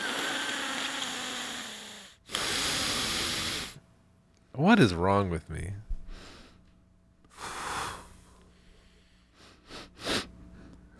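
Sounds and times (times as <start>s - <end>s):
unhealthy-sounding wheezing breathing through the nasal air passage: 0.0s - 3.8s, 6.1s - 6.6s, 7.3s - 10.9s
speech: 4.6s - 5.9s.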